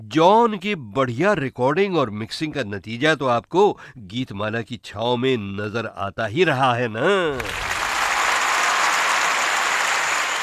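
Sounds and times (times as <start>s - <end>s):
speech: 0.1s - 7.8s
applause sound effect: 7.4s - 10.4s.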